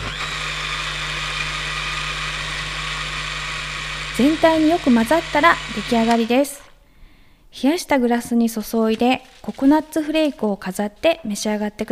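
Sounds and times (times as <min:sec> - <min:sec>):
blender running: 0:00.0 - 0:06.8
speech: 0:04.2 - 0:06.6, 0:07.5 - 0:11.9.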